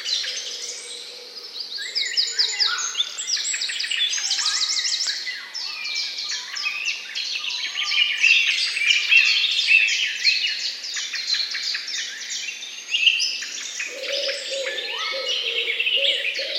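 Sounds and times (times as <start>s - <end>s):
dense dawn-type bird chorus: 0.0s - 16.5s
low repeated cooing: 13.9s - 16.5s.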